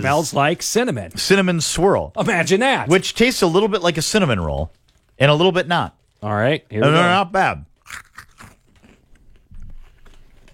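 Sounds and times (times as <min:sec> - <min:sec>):
speech: 0:00.0 - 0:08.0
biting and crunching a rice cake: 0:07.8 - 0:10.5.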